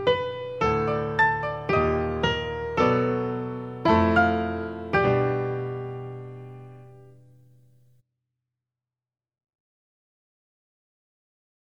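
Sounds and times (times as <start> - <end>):
two pianos in high register: 0.0 - 7.3.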